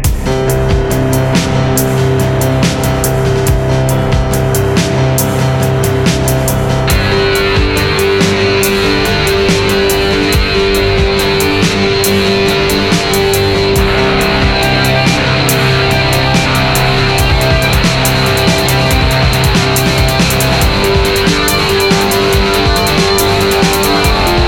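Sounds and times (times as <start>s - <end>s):
outro music: 0.1s - 24.4s.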